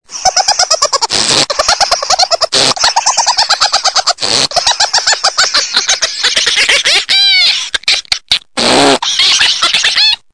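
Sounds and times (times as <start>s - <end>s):
person laughing: 0.1s - 10.3s.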